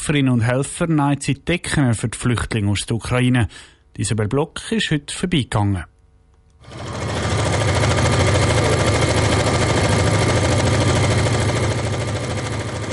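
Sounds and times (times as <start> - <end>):
speech: 0.1 - 5.9, 6.6 - 7.1
sewing machines running at full speed: 6.6 - 12.9.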